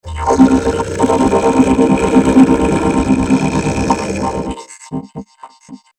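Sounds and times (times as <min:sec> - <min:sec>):
game music: 0:00.0 - 0:04.6.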